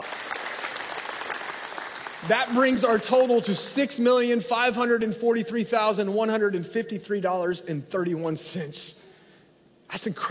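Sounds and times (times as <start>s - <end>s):
audience applause: 0.0s - 3.4s
speech: 2.2s - 9.0s, 9.9s - 10.2s.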